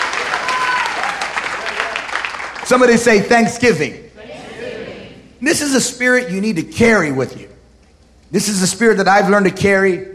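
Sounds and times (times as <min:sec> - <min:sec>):
audience applause: 0:00.0 - 0:02.9
speech: 0:02.7 - 0:04.0, 0:05.4 - 0:07.6, 0:08.3 - 0:10.1.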